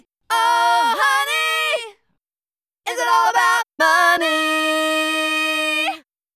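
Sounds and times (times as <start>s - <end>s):
person singing: 0.3s - 1.8s, 2.9s - 6.0s.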